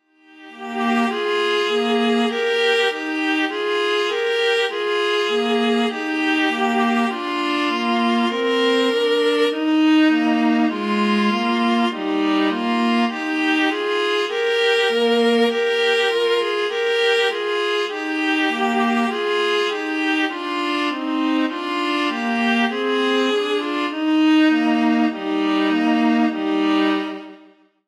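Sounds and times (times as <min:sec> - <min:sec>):
andante piece in E flat major: 0:00.1 - 0:27.6.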